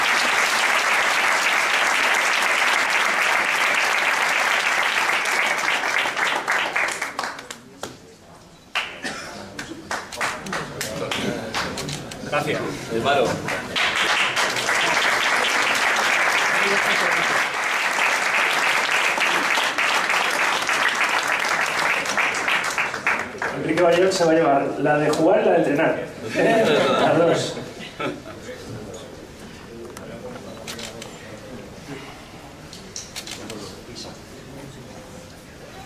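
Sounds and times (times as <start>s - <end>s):
audience applause: 0.0s - 7.7s, 9.8s - 11.8s, 13.4s - 24.0s
speech: 12.4s - 13.5s, 24.1s - 28.2s
laughter: 26.2s - 28.7s.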